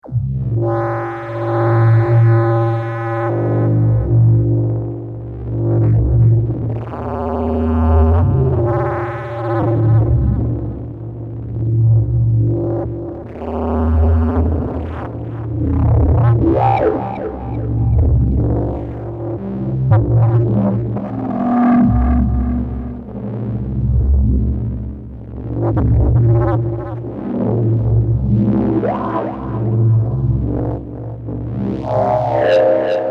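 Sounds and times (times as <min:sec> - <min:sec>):
Kaossilator synthesizer: 0:00.1 - 0:33.0.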